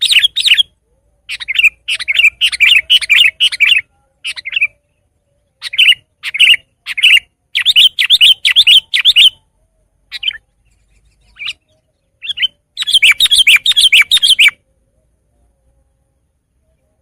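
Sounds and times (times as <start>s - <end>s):
sooty-headed bulbul song: 0.0s - 17.0s.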